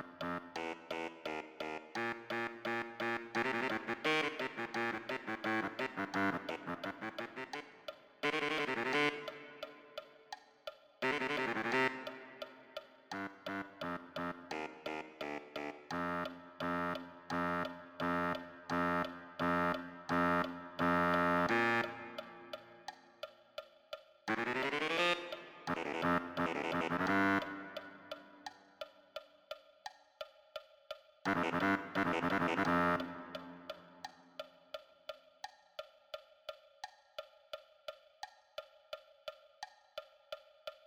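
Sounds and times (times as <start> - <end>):
baritone saxophone: 0.0 - 9.9, 11.0 - 22.9, 24.3 - 28.4, 31.3 - 34.0.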